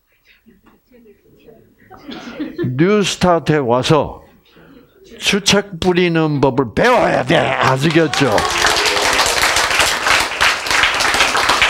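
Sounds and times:
speech: 0.4s - 4.2s, 5.2s - 8.6s
audience clapping: 7.0s - 11.6s.

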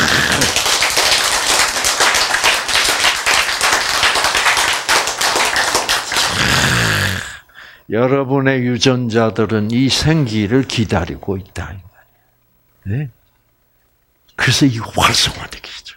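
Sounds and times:
crowd applause: 0.0s - 7.4s
speech: 7.9s - 11.9s, 12.8s - 13.2s, 14.4s - 15.9s.

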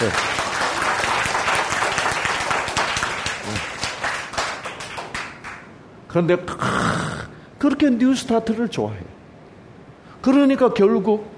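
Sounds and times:
speech: 0.0s - 0.3s, 6.1s - 7.0s, 7.6s - 9.2s, 10.2s - 11.3s
audience applause: 0.0s - 5.7s.

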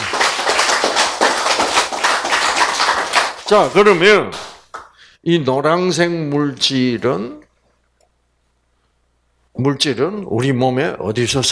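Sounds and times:
audience clapping: 0.0s - 5.0s
speech: 3.5s - 4.5s, 5.2s - 7.4s, 9.6s - 11.5s.

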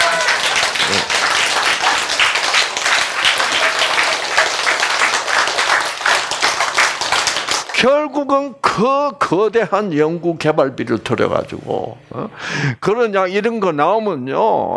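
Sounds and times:
audience applause: 0.0s - 7.8s
speech: 7.8s - 14.7s.

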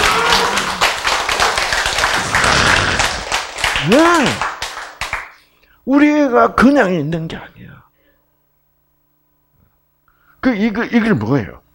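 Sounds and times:
group hand clapping: 0.0s - 5.4s
speech: 3.9s - 4.5s, 5.9s - 7.8s, 10.4s - 11.6s.

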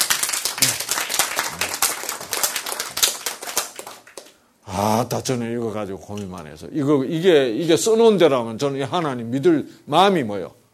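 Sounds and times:
audience applause: 0.0s - 4.3s
speech: 4.7s - 10.6s.

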